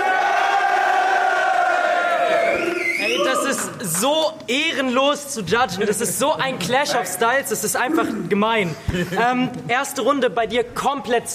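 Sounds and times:
live audience cheering and shouting: 0.0s - 4.0s
speech: 3.6s - 11.3s.

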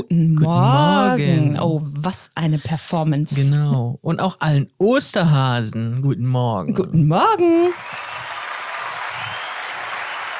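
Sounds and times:
speech: 0.0s - 8.2s
large crowd applauding: 7.6s - 10.3s.

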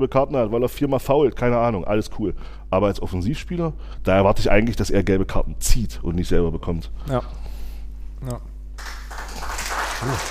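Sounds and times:
speech: 0.0s - 7.5s, 8.2s - 9.0s, 10.0s - 10.3s
applause: 8.8s - 10.3s.

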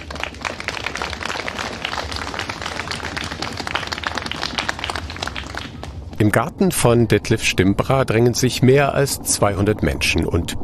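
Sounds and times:
audience applause: 0.0s - 6.2s
speech: 6.2s - 10.6s.

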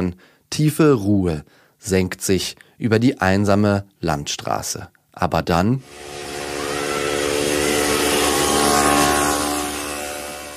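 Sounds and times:
speech: 0.0s - 6.4s
moped engine passing: 5.8s - 10.5s.

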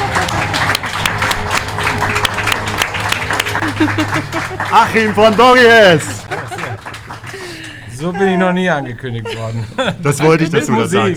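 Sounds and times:
audience applause: 0.0s - 8.1s
laughter: 3.4s - 11.1s
speech: 3.8s - 6.2s, 8.0s - 11.1s.

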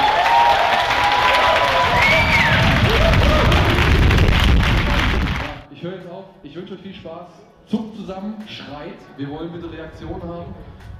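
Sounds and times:
cheers and whistles: 0.0s - 3.8s
crowd applauding: 0.0s - 5.7s
speech: 7.1s - 10.9s.

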